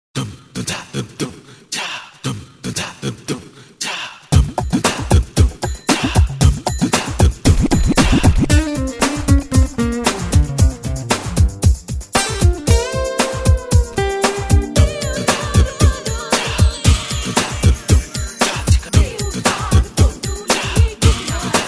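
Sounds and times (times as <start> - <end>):
instrumental dance class music: 4.4 - 21.6.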